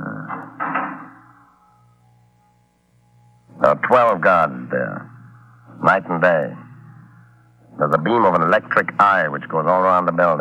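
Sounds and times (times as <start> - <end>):
heavy fire door being closed: 0.3 - 1.3
speech: 3.7 - 5.2, 5.8 - 6.6, 7.8 - 10.3.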